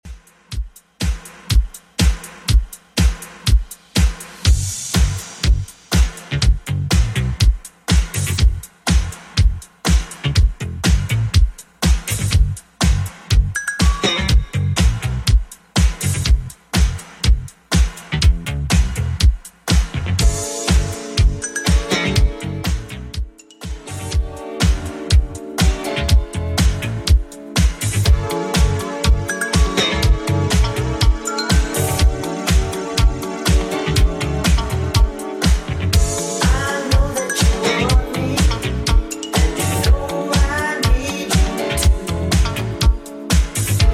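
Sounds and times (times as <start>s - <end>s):
80s drum machine beat: 0.0s - 43.9s.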